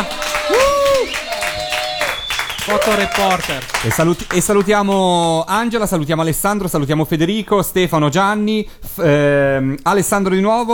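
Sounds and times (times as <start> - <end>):
high drawn-out cheer or whoop: 0.0 - 3.5
applause: 0.0 - 5.2
speech: 2.7 - 10.7.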